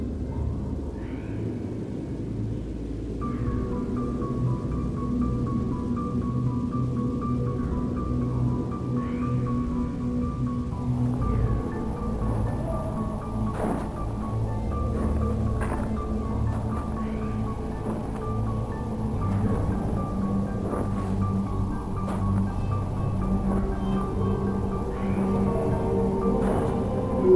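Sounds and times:
river flowing: 0.1 - 27.3
thin tone: 26.9 - 27.3.

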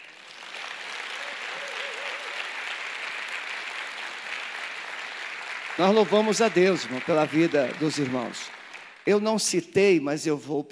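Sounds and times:
audience applause: 0.0 - 9.1
speech: 5.8 - 10.7.

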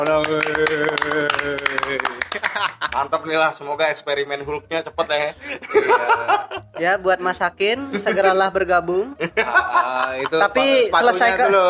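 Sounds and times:
hand clapping: 0.0 - 3.1
speech: 0.0 - 11.6
laughter: 0.3 - 3.1, 5.4 - 6.8, 9.2 - 11.4.

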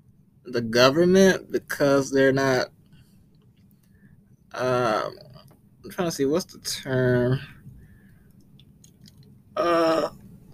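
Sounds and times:
speech: 0.4 - 2.8, 4.5 - 7.6, 9.6 - 10.2
person yawning: 9.6 - 10.2.

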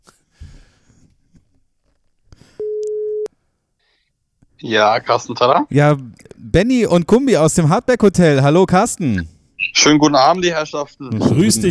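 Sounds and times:
telephone ringback tone on outgoing call: 2.6 - 3.3
speech: 4.6 - 11.6.

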